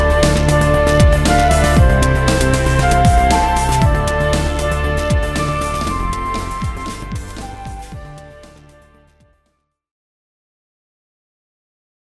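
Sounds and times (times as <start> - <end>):
flute with orchestra in D minor: 0.0 - 8.8.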